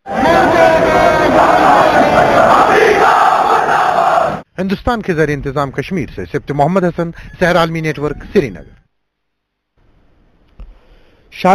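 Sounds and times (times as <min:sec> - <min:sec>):
protest crowd chanting slogans in a procession after Friday prayers: 0:00.0 - 0:04.4
speech: 0:04.6 - 0:08.8, 0:11.4 - 0:11.5.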